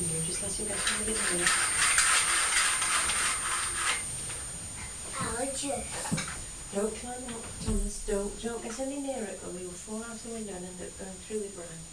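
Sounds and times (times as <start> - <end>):
blind cord or chain clicking through a ratchet: 0.0 - 4.5
window blind being drawn open: 0.4 - 4.4
speech: 0.5 - 1.8, 5.6 - 11.9.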